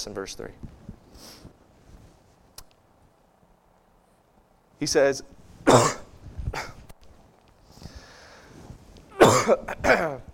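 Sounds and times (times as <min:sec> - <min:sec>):
speech: 0:00.0 - 0:01.5, 0:04.8 - 0:06.0, 0:09.5 - 0:10.3
preacher coughing and throat clearing while choking up during a sermon: 0:05.6 - 0:06.8, 0:09.1 - 0:10.3.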